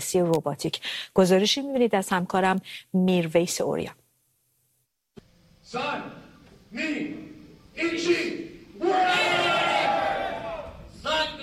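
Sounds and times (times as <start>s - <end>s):
speech: 0.0s - 4.0s, 5.7s - 9.9s
spectators cheering at a humanoid robot fight: 8.8s - 11.4s.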